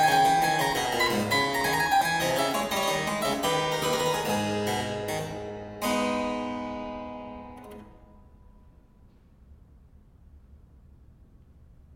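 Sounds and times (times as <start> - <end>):
baroque harpsichord piece: 0.0 - 8.2.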